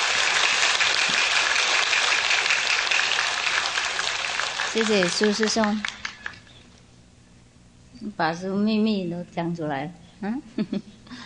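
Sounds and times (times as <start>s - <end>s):
audience applause: 0.0s - 6.5s
speech: 4.7s - 6.0s, 8.2s - 11.0s.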